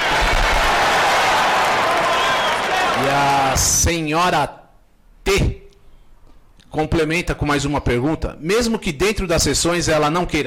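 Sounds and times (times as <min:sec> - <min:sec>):
applause: 0:00.0 - 0:03.6
speech: 0:03.2 - 0:04.6, 0:05.3 - 0:05.5, 0:06.7 - 0:10.4.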